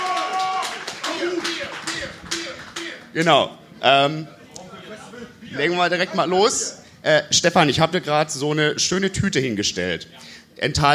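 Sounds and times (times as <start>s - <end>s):
crowd applause: 0.0s - 3.1s
voices calling out and cheering: 0.0s - 3.1s
speech: 3.2s - 4.4s, 5.5s - 10.9s.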